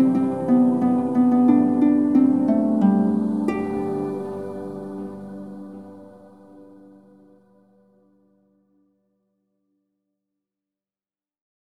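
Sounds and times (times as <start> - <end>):
instrumental Christmas song: 0.0 - 8.8.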